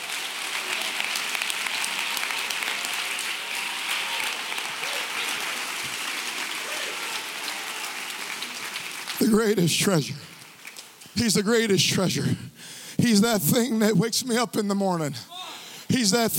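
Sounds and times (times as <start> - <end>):
audience clapping hands: 0.0 - 11.5
speech: 9.2 - 10.3, 11.2 - 15.3, 15.9 - 16.3.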